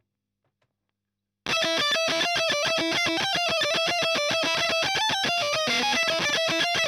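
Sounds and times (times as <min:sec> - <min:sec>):
fuzz guitar ending: 0:01.5 - 0:06.8.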